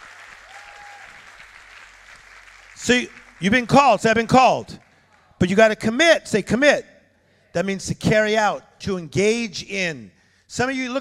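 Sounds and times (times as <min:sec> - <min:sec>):
crowd clapping hands: 0:00.0 - 0:05.4
speech: 0:02.8 - 0:04.8, 0:05.4 - 0:06.9, 0:07.6 - 0:10.9.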